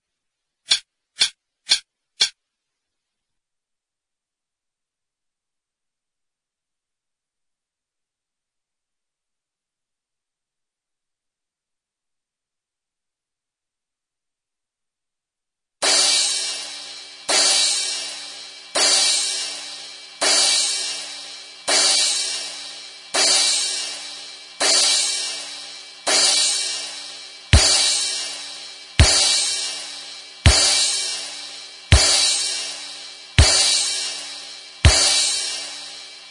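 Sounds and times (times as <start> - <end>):
backing music: 15.8 - 36.2.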